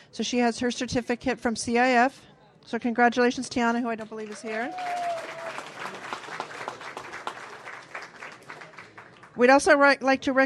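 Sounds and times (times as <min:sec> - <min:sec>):
speech: 0:00.1 - 0:05.0, 0:09.4 - 0:10.4
audience clapping: 0:04.0 - 0:09.4.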